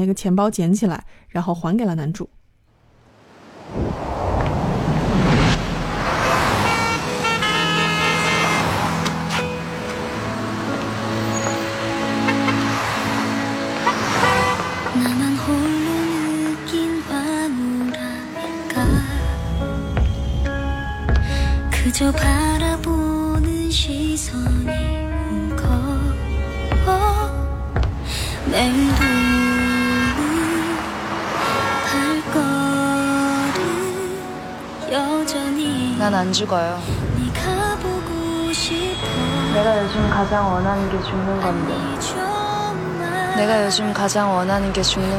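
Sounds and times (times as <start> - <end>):
speech: 0.0 - 2.4, 21.9 - 22.5, 36.0 - 37.1, 39.6 - 42.4, 43.4 - 45.1
street traffic: 3.0 - 45.1
car horns: 6.0 - 10.0, 11.2 - 15.4, 28.6 - 31.7, 38.5 - 41.8.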